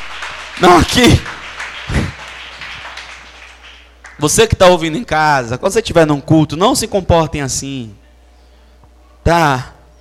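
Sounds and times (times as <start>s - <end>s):
audience applause: 0.0s - 4.2s
speech: 0.6s - 1.4s, 4.2s - 8.0s, 9.3s - 9.7s.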